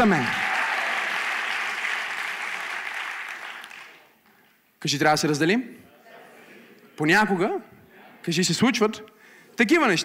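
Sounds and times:
speech: 0.0 - 0.4, 4.8 - 5.8, 7.0 - 10.0
audience applause: 0.0 - 4.1.

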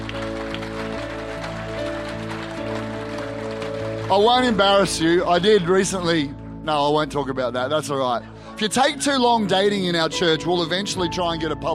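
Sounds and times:
audience applause: 0.0 - 6.1
speech: 4.1 - 11.7.

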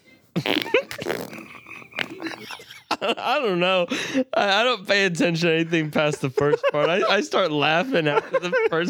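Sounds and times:
speech: 0.4 - 0.8, 3.0 - 8.8
loud drawn-out sputtering fart: 0.4 - 2.4
laughter: 0.4 - 3.5, 5.8 - 8.8.

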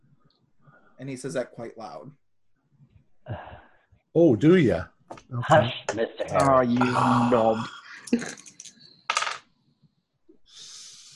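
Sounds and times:
speech: 1.0 - 2.2, 4.2 - 8.5
dice being rolled: 8.5 - 9.5.

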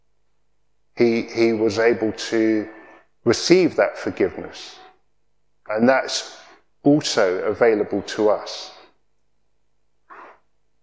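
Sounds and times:
faint hum: 0.0 - 10.8
speech: 1.0 - 4.8, 5.7 - 8.8
person sneezing: 10.1 - 10.5.

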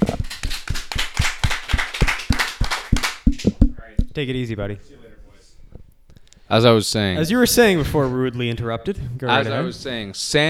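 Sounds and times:
small group clapping hands: 0.0 - 4.6
speech: 4.2 - 5.0, 6.5 - 10.4.

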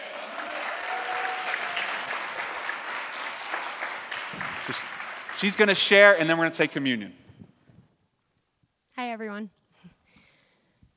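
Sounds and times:
church congregation applause welcoming a speaker: 0.0 - 7.3
speech: 4.7 - 7.2.

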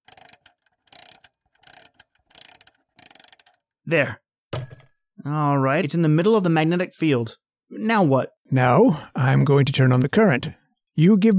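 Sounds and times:
old alarm clock being wound: 0.0 - 3.8
speech: 3.9 - 4.2, 5.2 - 11.3.

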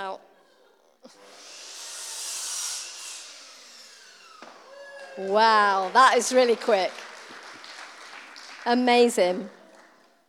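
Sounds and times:
power tool whirring: 1.1 - 7.4
speech: 5.2 - 7.0, 8.6 - 9.6.

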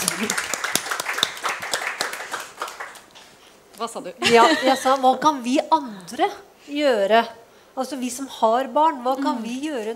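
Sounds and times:
audience applause: 0.0 - 3.1
speech: 0.2 - 0.5, 3.8 - 9.9
laughter: 4.2 - 5.0.

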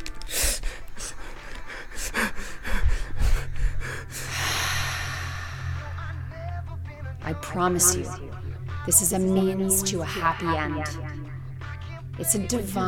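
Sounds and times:
slow deep breathing to calm down: 0.2 - 7.0
speech: 7.3 - 11.2, 12.2 - 12.8.

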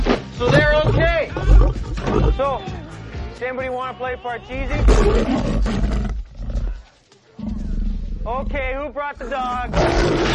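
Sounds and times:
cougar roaring: 0.5 - 2.5, 4.7 - 8.8, 9.4 - 10.3
speech: 3.4 - 5.9, 8.3 - 10.3.

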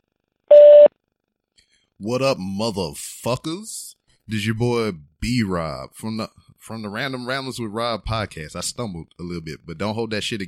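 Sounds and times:
answering machine beep: 0.5 - 0.9
speech: 2.0 - 10.4.

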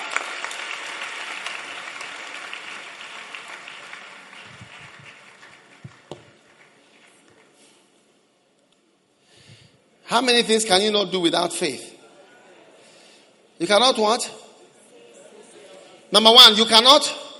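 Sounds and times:
crowd applauding: 0.0 - 7.6
speech: 10.1 - 11.9, 13.6 - 14.4, 16.1 - 17.2.

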